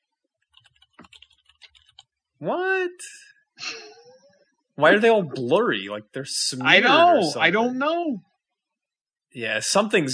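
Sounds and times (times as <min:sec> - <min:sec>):
typing on a computer keyboard: 0:00.5 - 0:02.1
speech: 0:02.4 - 0:03.2, 0:04.8 - 0:08.3, 0:09.3 - 0:10.1.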